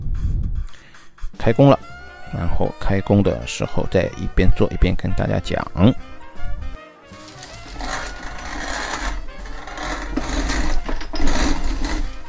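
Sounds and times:
speech: 0:01.4 - 0:06.1
grain mill grinding malt: 0:07.1 - 0:12.2.

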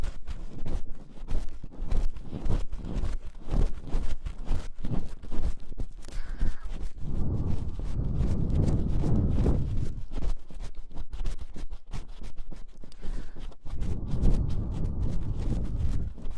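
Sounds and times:
scratchy rubbing in ear massage and ear cleaning: 0:00.0 - 0:16.3
low blowing: 0:06.3 - 0:10.2, 0:13.0 - 0:16.3.

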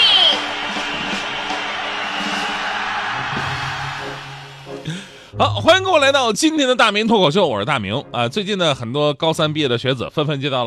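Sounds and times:
audience applause and cheering: 0:00.0 - 0:05.2
speech: 0:05.4 - 0:10.6.

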